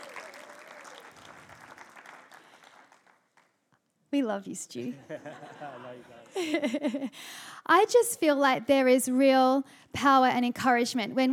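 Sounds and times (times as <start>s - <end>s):
crowd cheering: 0.0s - 2.6s
crowd applause: 0.0s - 3.5s
speech: 4.1s - 11.3s
laughter: 4.9s - 7.2s.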